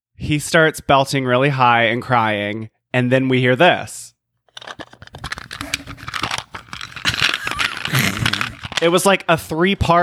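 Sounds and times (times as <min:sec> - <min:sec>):
speech: 0:00.2 - 0:04.8, 0:08.8 - 0:10.0
paper candy wrappers crinkling: 0:04.6 - 0:09.0.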